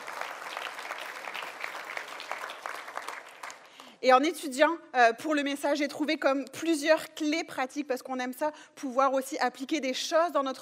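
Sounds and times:
audience applauding: 0.0s - 4.0s
speech: 4.0s - 10.6s.

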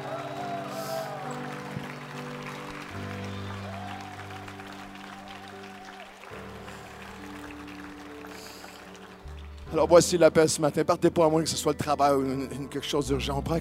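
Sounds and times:
congregation applause during a church worship service: 0.0s - 10.5s
speech: 9.7s - 13.5s.

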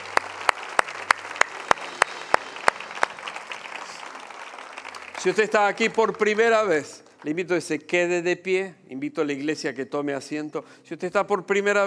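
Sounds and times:
audience applause: 0.0s - 7.4s
speech: 5.2s - 11.8s.

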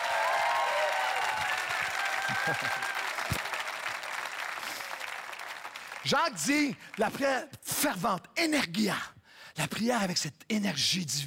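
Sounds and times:
audience applauding: 0.0s - 7.3s
speech: 2.4s - 2.9s, 6.0s - 11.2s.

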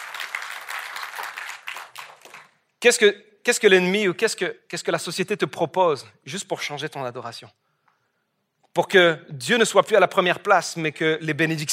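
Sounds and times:
church congregation applauding: 0.0s - 2.8s
speech: 2.8s - 7.6s, 8.8s - 11.7s.

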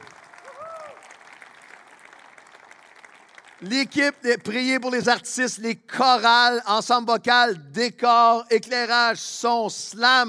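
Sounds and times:
audience applauding: 0.0s - 4.4s
speech: 3.6s - 10.2s.

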